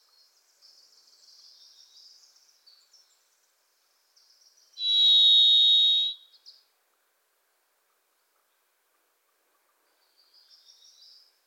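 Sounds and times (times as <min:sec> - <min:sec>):
varied thrush song: 0:04.8 - 0:06.2.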